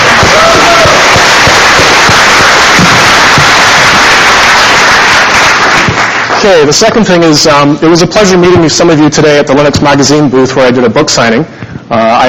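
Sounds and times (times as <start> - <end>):
audience applause: 0.0 - 6.8
speech: 6.4 - 12.2.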